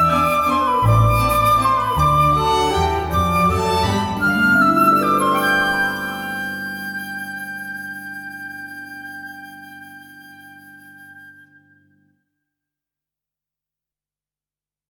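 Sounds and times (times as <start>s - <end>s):
waltz in A major: 0.0s - 11.1s.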